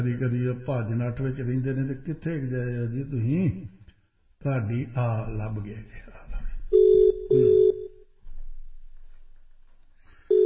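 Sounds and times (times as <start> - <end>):
speech: 0.0 - 3.8, 4.4 - 6.1, 7.3 - 7.8
ringback tone of an outgoing phone call from a radio studio: 6.7 - 8.0, 10.3 - 10.4.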